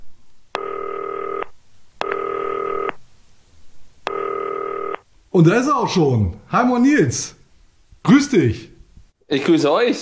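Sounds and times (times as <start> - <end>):
telephone ringing tone: 0.6 - 1.4, 2.0 - 2.9, 4.1 - 5.0
speech: 5.4 - 7.4, 8.0 - 8.7, 9.3 - 10.0.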